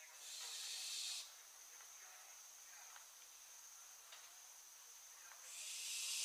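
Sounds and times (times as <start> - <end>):
barn owl Tyto alba screeching: 0.2 - 1.3, 5.5 - 6.2.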